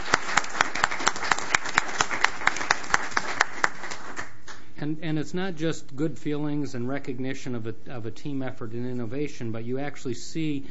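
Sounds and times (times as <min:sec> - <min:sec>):
round of applause: 0:00.0 - 0:04.6
speech: 0:04.8 - 0:10.7.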